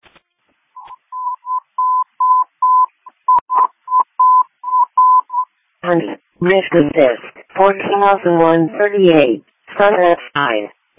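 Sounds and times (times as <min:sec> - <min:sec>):
dispatch tone-out paging tone beeps: 0:00.8 - 0:05.5
speech: 0:05.8 - 0:10.9.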